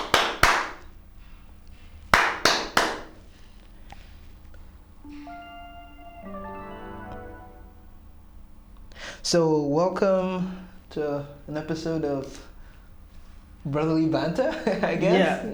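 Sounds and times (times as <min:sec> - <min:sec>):
hand clap for recording sync: 0:00.0 - 0:00.9, 0:02.1 - 0:03.2
speech: 0:09.2 - 0:12.5, 0:13.6 - 0:15.5.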